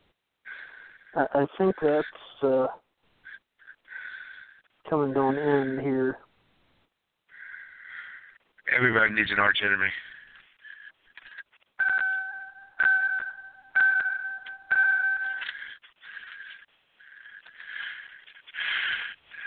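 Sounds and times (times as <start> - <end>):
speech: 1.2 - 2.8, 4.9 - 6.3, 8.7 - 10.1
car ignition warning chime: 11.8 - 15.5.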